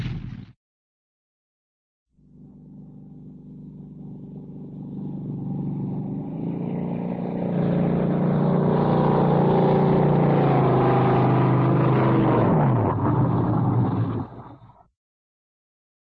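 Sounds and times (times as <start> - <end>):
jet boat driving fast and steady heard on board, cartoon: 2.3 - 14.6.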